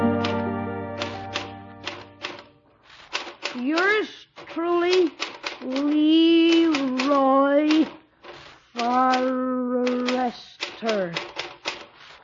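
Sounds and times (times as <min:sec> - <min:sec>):
typewriter typing: 0:00.2 - 0:12.2.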